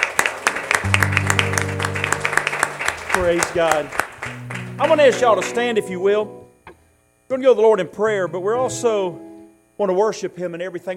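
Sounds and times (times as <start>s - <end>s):
church congregation clapping in praise: 0.0s - 5.8s
sustained keyboard chord: 0.8s - 10.9s
speech: 3.2s - 6.4s, 7.3s - 10.9s.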